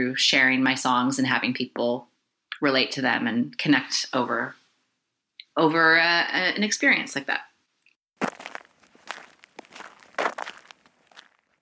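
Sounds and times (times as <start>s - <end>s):
speech: 0.0s - 4.6s, 5.6s - 7.5s
footsteps on a rough surface walking in a park: 8.2s - 11.6s.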